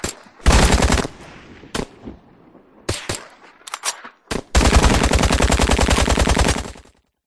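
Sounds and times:
designed machine gun bursts: 0.5s - 1.1s, 4.5s - 6.9s.

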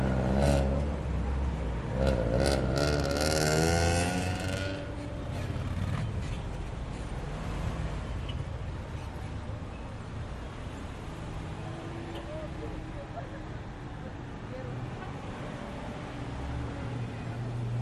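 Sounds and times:
motorcycle: 0.0s - 8.4s
street traffic: 0.0s - 17.7s
walla of people chatting: 12.2s - 14.8s.

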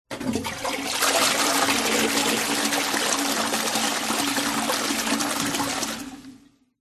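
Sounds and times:
household toilet flushing in a small room: 0.1s - 6.7s.

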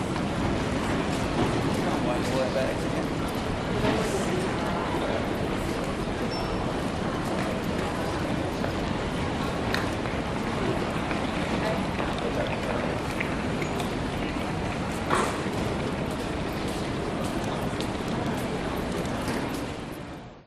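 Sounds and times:
busy people in an airport terminal check-in area in Sydney: 0.0s - 20.4s.

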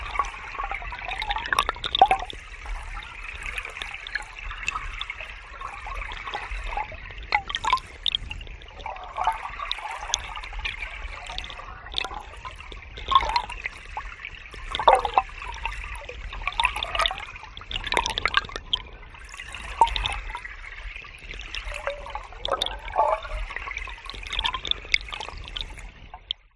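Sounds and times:
forest streamlet gurgling recorded with a hydrophone: 0.0s - 26.5s.

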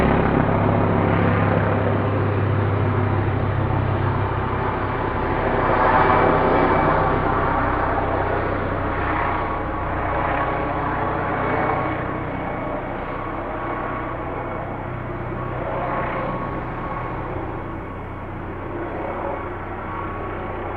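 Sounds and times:
helicopter hovering overhead: 0.0s - 20.7s.

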